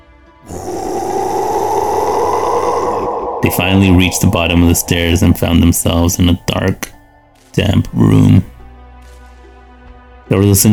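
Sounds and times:
creature growling: 0:00.4 - 0:05.4
speech: 0:03.4 - 0:07.0, 0:07.6 - 0:08.5, 0:10.3 - 0:10.7.

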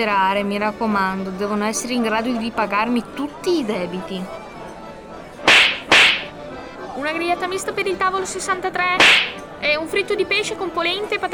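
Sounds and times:
speech: 0:00.0 - 0:04.4, 0:07.0 - 0:11.3
slap: 0:05.5 - 0:06.3, 0:09.0 - 0:09.4.

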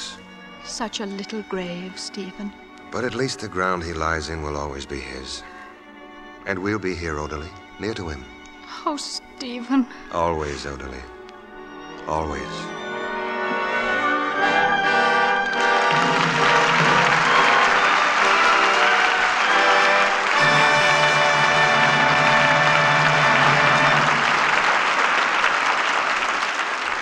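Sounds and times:
orchestral music: 0:00.0 - 0:27.0
speech: 0:00.8 - 0:05.5, 0:06.4 - 0:11.2, 0:12.0 - 0:12.8
studio audience applause: 0:14.6 - 0:27.0.

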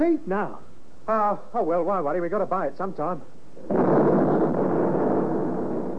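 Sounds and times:
speech: 0:00.0 - 0:04.2
V1 flying bomb explosion nearby: 0:03.6 - 0:05.9.

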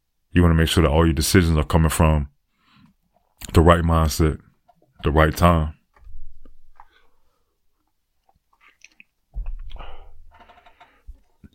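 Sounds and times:
speech: 0:00.4 - 0:02.4, 0:03.4 - 0:05.8
person sipping hot ginger tea: 0:08.5 - 0:10.1.

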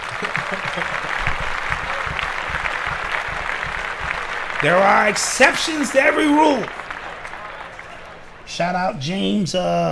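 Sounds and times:
laughter: 0:00.0 - 0:03.0
clapping: 0:00.0 - 0:08.2
speech: 0:00.2 - 0:01.1, 0:04.6 - 0:06.8, 0:08.6 - 0:09.9.

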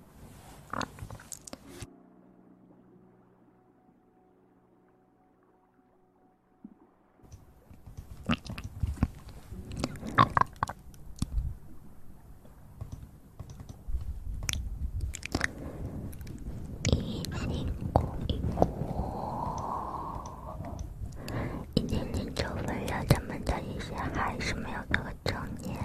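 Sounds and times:
low steady hum: 0:00.0 - 0:25.8
wet mouth clicks, bites and crunchy chewing close to the mouth: 0:00.7 - 0:01.6, 0:08.0 - 0:11.4, 0:14.4 - 0:24.3.

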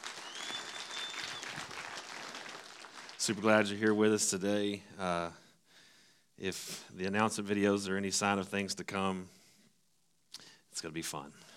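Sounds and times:
whistle: 0:00.0 - 0:01.8
audience applause: 0:00.0 - 0:03.5
speech: 0:03.2 - 0:05.4, 0:06.4 - 0:09.4, 0:10.8 - 0:11.5.

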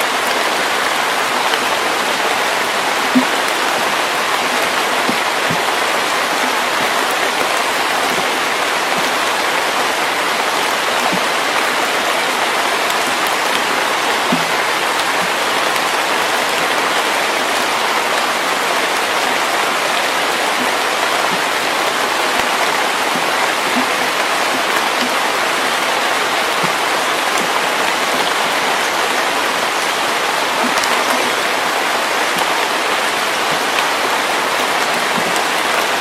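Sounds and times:
steady rain in a forest in early summer: 0:00.0 - 0:35.9.

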